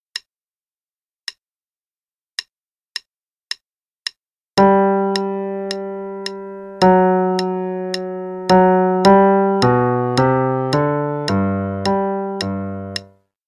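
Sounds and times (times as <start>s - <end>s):
play-along march, left hand part: 4.6s - 13.1s.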